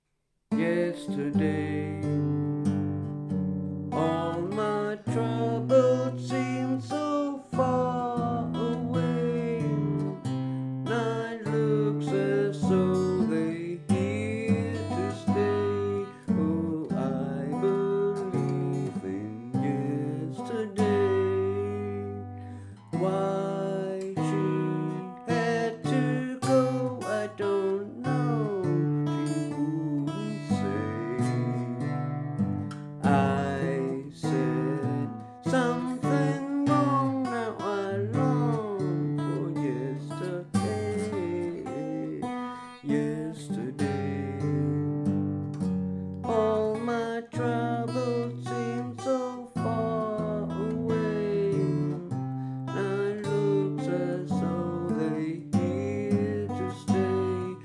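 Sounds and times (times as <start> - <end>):
person singing a working tape vocal take: 0.5 - 3.0, 3.9 - 45.6, 46.2 - 57.6.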